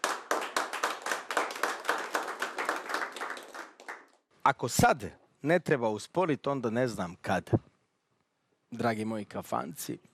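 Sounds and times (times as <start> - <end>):
audience rhythmic hand clapping at a tavern-style music show: 0.0 - 4.2
speech: 4.5 - 7.7, 8.7 - 10.1.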